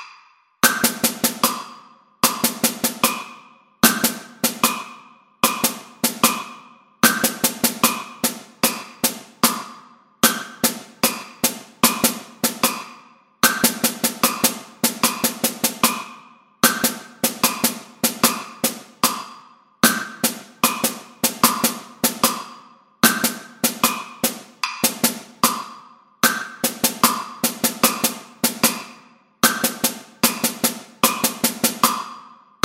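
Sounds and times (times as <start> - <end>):
drum set: 0.6 - 32.6.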